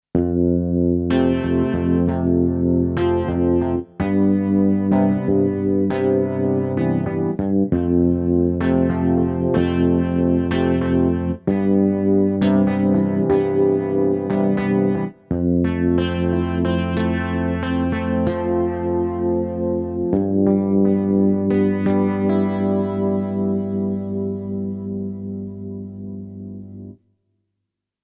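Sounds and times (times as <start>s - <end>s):
Charlie Lab digitar: 0.1s - 27.0s.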